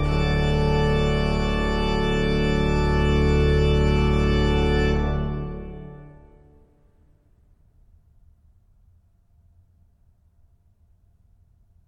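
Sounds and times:
organ chorale prelude: 0.0 - 6.8.

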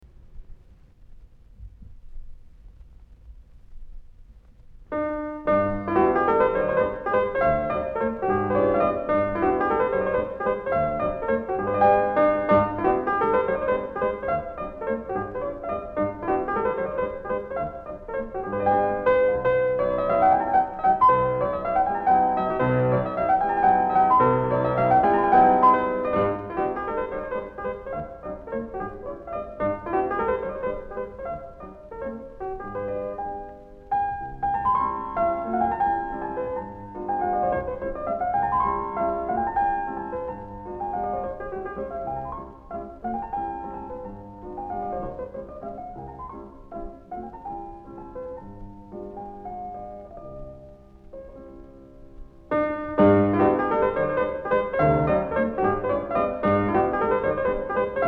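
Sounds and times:
mazurka in G on piano: 0.0 - 58.0.

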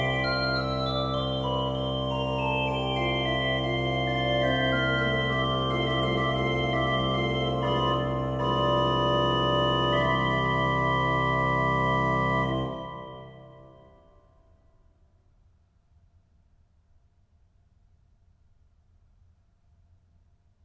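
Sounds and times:
organ prelude: 0.0 - 14.2.

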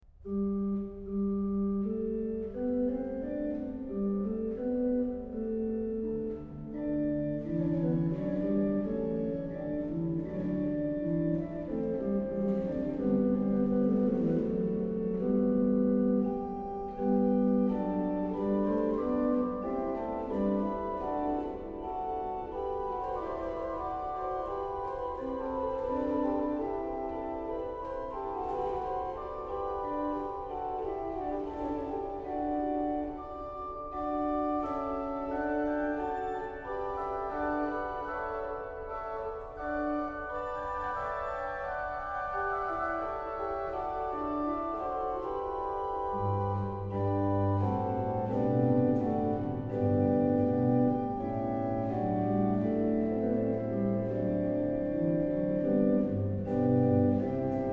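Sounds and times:
organ: 0.2 - 57.7.

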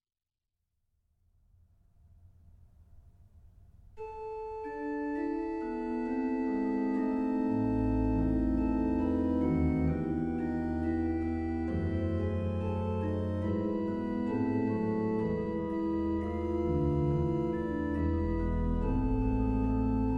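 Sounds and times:
organ chorale prelude: 4.0 - 20.1.

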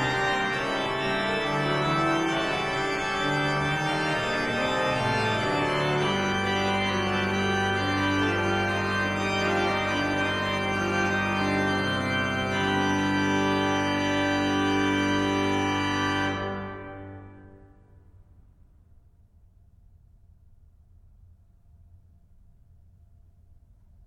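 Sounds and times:
organ chorale prelude: 0.0 - 17.9.

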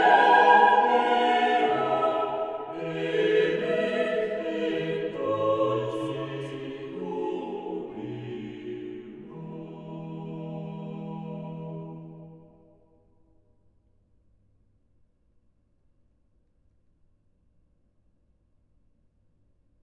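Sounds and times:
organ chorale: 0.0 - 12.4.

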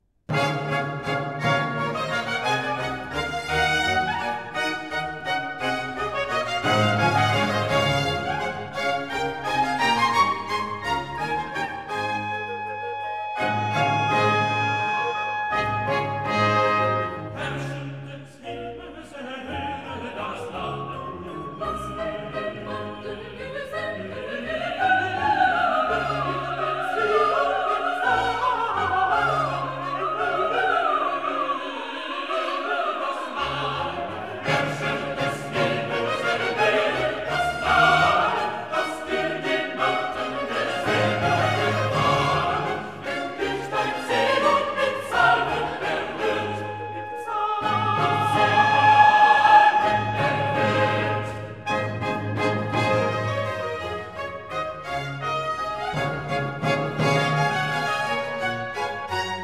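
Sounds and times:
song chorus da capo: 0.3 - 59.4.

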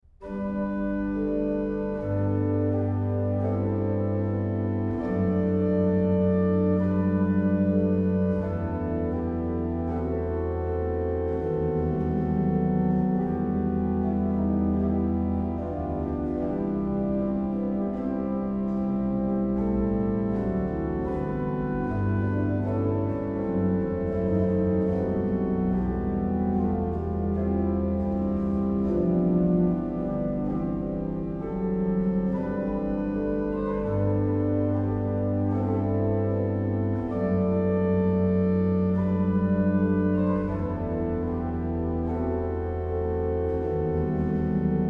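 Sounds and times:
organ playing chorale preludes: 0.0 - 44.8.

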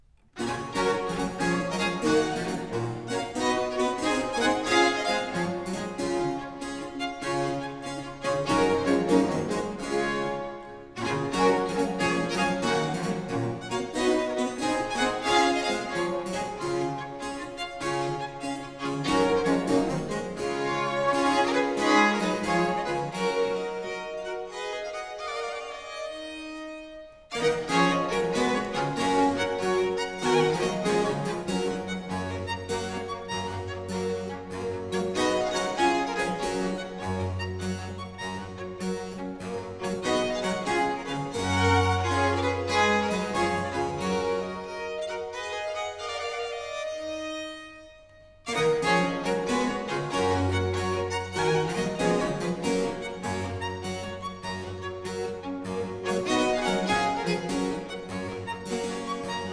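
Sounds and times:
trio sonata gigue for two violins and continuo: 0.0 - 59.5.

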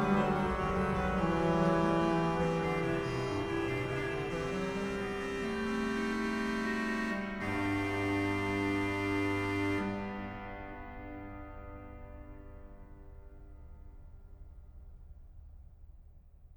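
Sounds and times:
organ fughetta: 0.0 - 9.8.

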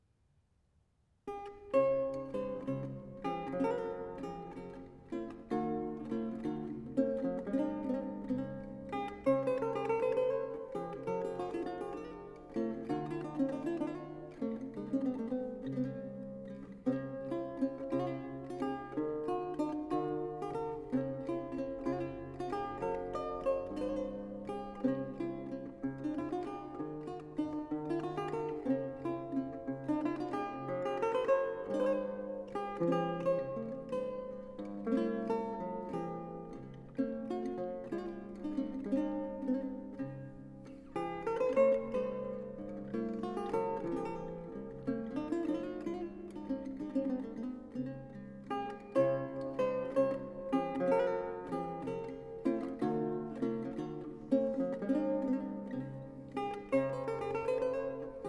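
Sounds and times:
lute solo: 1.3 - 58.2.

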